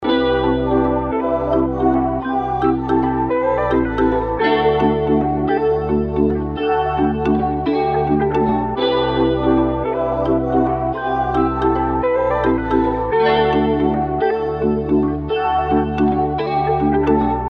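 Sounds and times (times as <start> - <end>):
R&B music: 0.0 - 17.4.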